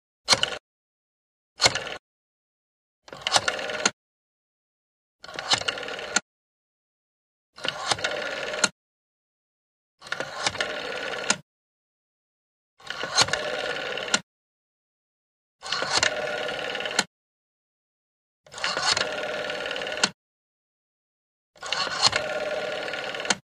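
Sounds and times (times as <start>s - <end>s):
rotary telephone dialing a number: 1.6s - 2.0s, 3.1s - 4.0s, 5.2s - 6.2s, 7.6s - 8.8s, 10.0s - 11.4s, 12.8s - 14.2s, 15.6s - 17.1s, 18.5s - 20.2s, 21.6s - 23.4s.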